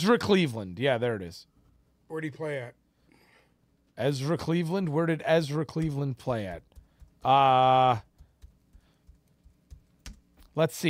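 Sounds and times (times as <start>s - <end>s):
speech: 0.0s - 2.8s, 4.0s - 8.1s, 10.6s - 10.8s
typing on a computer keyboard during a player-name search: 8.1s - 10.4s.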